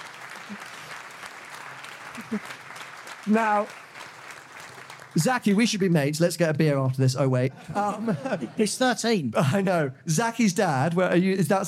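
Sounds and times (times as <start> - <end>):
audience applause: 0.0 - 6.2
speech: 0.5 - 0.7, 2.2 - 2.6, 3.2 - 3.8, 5.2 - 11.6
laughter: 2.0 - 2.7, 7.4 - 9.9.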